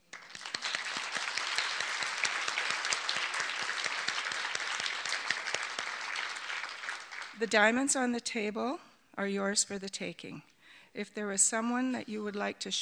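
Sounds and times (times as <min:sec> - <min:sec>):
crowd applauding: 0:00.0 - 0:07.4
speech: 0:07.4 - 0:12.8.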